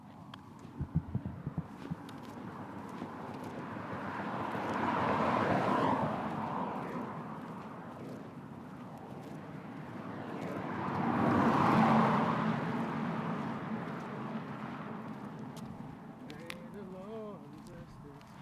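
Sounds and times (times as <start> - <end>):
traffic rumble: 0.0 - 18.4
vehicles passing: 0.0 - 18.4
sharp clicks: 0.7 - 2.4
warbling sound: 0.8 - 2.2.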